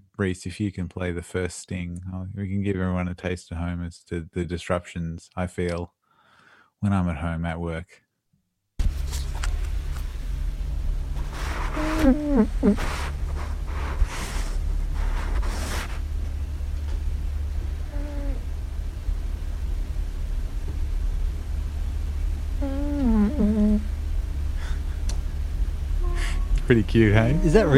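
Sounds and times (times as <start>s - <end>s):
speech: 0.2s - 6.0s, 6.8s - 8.0s, 12.0s - 13.1s, 26.7s - 27.7s
steady low rumble: 8.8s - 27.7s
snoring: 11.7s - 12.9s, 17.8s - 18.4s, 22.6s - 23.9s.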